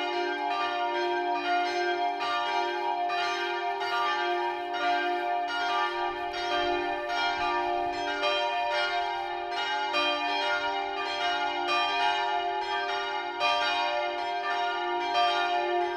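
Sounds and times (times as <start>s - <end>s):
multi-voice peal of bells tuned d2 f2 g2: 0.0s - 15.9s.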